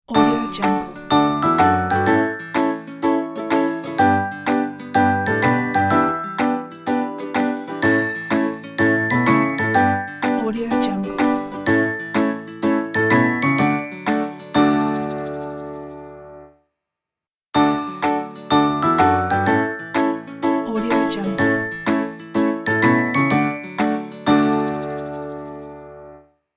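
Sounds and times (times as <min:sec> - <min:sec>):
happy jingle ident: 0:00.1 - 0:16.4, 0:17.6 - 0:26.2.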